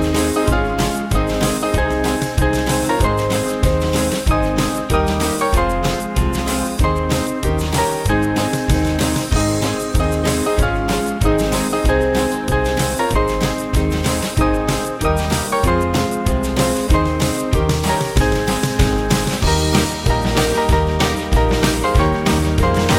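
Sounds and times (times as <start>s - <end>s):
small band playing: 0.0s - 22.9s.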